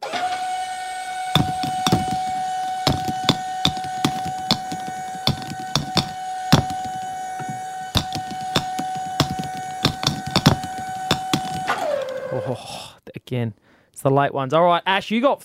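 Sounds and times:
ball machine humming whine: 0.0s - 12.4s
balls fired from ball machine: 1.4s - 12.2s
speech: 13.3s - 15.4s.

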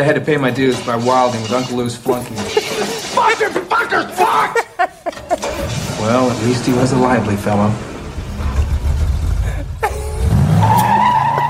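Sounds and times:
speech: 0.0s - 2.6s, 3.2s - 5.0s, 5.6s - 7.9s
tires squealing as a car drives off in a film scene: 0.5s - 4.6s, 5.3s - 11.4s
laughter: 2.0s - 7.6s, 9.4s - 11.4s
low car engine rumble: 5.1s - 11.0s.

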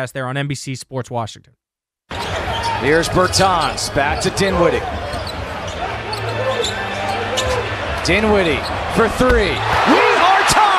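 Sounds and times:
speech: 0.0s - 1.6s, 2.8s - 5.3s, 8.0s - 10.0s
basketball arena crowd cheering: 2.1s - 10.7s.

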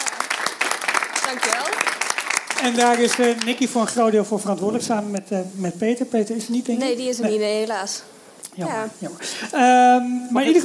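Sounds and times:
audience applause: 0.0s - 4.0s
speech: 1.3s - 2.0s, 2.6s - 10.6s.

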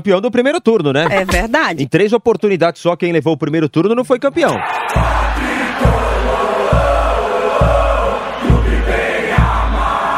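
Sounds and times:
speech: 0.0s - 5.2s
football supporters chanting in a stadium: 4.6s - 10.1s.

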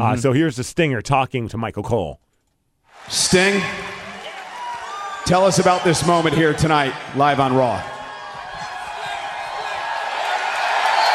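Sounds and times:
speech: 0.0s - 2.2s, 3.0s - 3.9s, 5.3s - 8.0s
arena crowd cheering: 2.9s - 11.1s.

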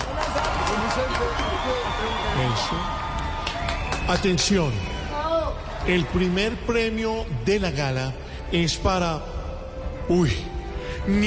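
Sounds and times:
audience applause: 0.0s - 6.9s
speech: 1.6s - 3.0s, 4.1s - 4.9s, 5.8s - 9.3s, 10.1s - 10.5s, 11.1s - 11.2s.

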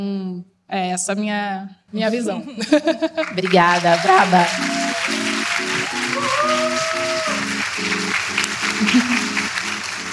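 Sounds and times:
speech: 0.0s - 4.8s
laughter: 2.4s - 7.5s, 8.4s - 9.5s
audience applause: 3.2s - 10.1s.

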